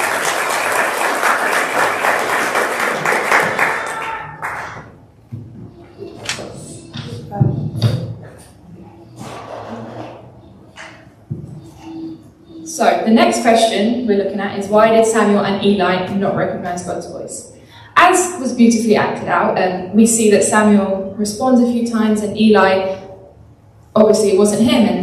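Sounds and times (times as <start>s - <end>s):
church audience round of applause: 0.0s - 5.0s
speech: 13.1s - 23.0s, 24.0s - 25.0s.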